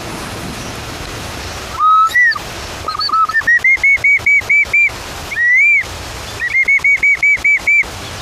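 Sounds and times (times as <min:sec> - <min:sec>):
bamboo instrument whistling in imitation of a bird call: 0:01.7 - 0:07.9.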